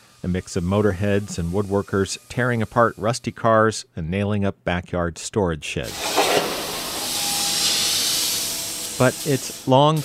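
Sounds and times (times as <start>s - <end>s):
plasma cutter hissing: 0.1s - 3.2s, 5.9s - 10.0s
speech: 0.2s - 6.2s, 9.0s - 10.0s.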